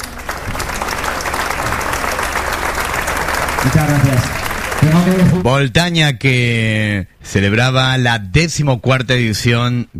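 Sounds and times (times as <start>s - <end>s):
audience applause: 0.0s - 5.5s
speech: 3.6s - 9.9s.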